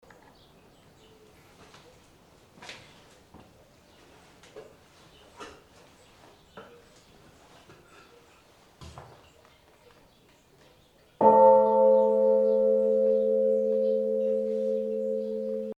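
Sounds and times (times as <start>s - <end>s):
bell ringing: 11.2s - 15.7s.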